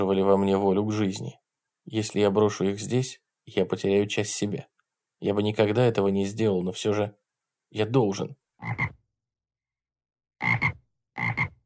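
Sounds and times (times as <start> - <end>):
speech: 0.0 - 9.0
toads croaking on a hillside: 8.6 - 9.0, 10.4 - 11.6.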